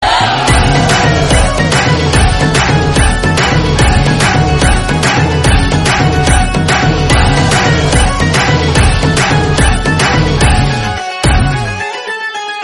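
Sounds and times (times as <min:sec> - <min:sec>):
instrumental background music: 0:00.0 - 0:12.6.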